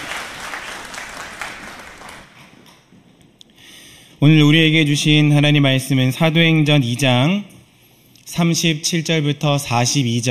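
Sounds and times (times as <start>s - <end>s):
audience applause: 0.0s - 2.4s
speech: 4.2s - 7.5s, 8.3s - 10.2s.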